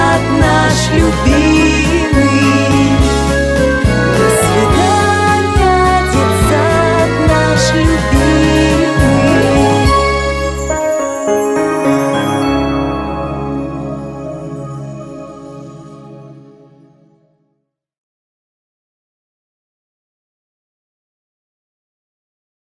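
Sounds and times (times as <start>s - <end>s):
waltz music: 0.0s - 17.0s.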